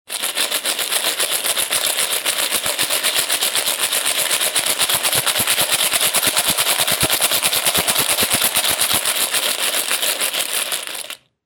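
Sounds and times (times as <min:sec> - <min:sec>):
shaking: 0:00.1 - 0:11.2.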